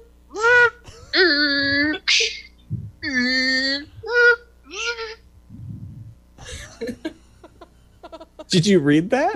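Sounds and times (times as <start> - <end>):
voice imitating claw machine noises: 0.0 - 6.2
laughter: 6.4 - 8.6
speech: 8.5 - 9.3.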